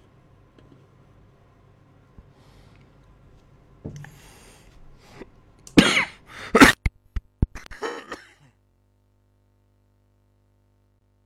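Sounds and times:
speech: 0:03.9 - 0:04.1
cough: 0:05.8 - 0:06.9, 0:07.6 - 0:08.6.

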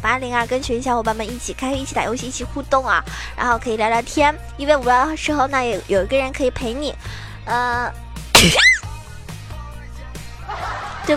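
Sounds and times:
speech: 0:00.1 - 0:08.7
person sneezing: 0:08.4 - 0:08.8
laughter: 0:10.4 - 0:11.1.

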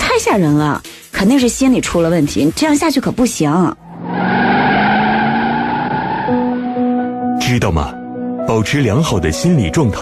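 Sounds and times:
speech: 0:00.2 - 0:04.2, 0:07.5 - 0:09.9
car skidding with tyres squealing: 0:03.7 - 0:06.9.

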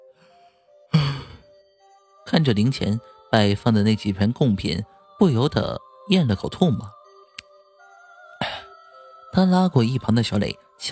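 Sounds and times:
person yawning: 0:01.0 - 0:01.4, 0:08.4 - 0:08.7
speech: 0:02.3 - 0:07.0, 0:09.4 - 0:10.9.

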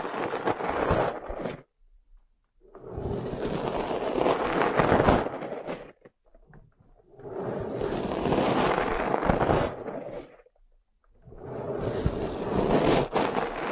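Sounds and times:
crackly rubbing and rustling of ear massage: 0:00.0 - 0:13.7.

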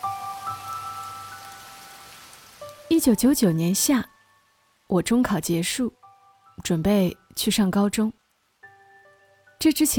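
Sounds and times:
heavy rain falling: 0:00.0 - 0:04.1
speech: 0:03.0 - 0:04.1, 0:04.9 - 0:06.0, 0:06.6 - 0:08.2, 0:09.6 - 0:09.9.

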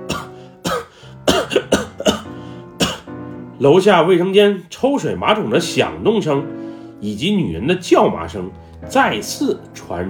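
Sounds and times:
man coughing repeatedly: 0:00.0 - 0:03.1
speech: 0:03.6 - 0:10.0.

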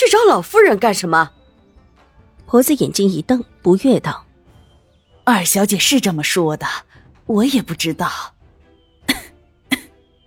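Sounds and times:
speech: 0:00.0 - 0:01.4, 0:02.5 - 0:04.3, 0:05.3 - 0:08.4
low coughs: 0:09.1 - 0:09.9.

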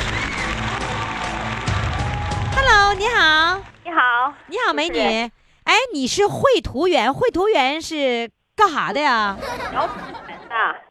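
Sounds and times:
audience applause: 0:00.0 - 0:03.8
speech: 0:02.9 - 0:10.8
laughter: 0:09.3 - 0:10.6.

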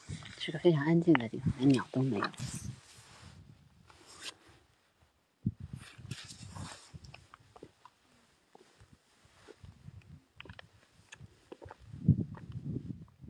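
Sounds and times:
wind blowing in quiet mountains: 0:00.0 - 0:03.9, 0:05.4 - 0:07.7, 0:08.8 - 0:13.2
speech: 0:00.5 - 0:02.6.

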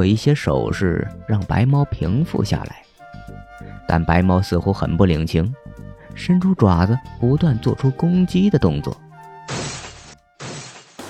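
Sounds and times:
speech: 0:00.0 - 0:02.9, 0:03.9 - 0:09.6
glass shattering: 0:09.5 - 0:11.0.

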